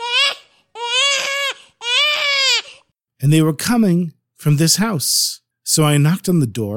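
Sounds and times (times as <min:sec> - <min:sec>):
baby crying: 0:00.0 - 0:02.9
speech: 0:03.2 - 0:06.7.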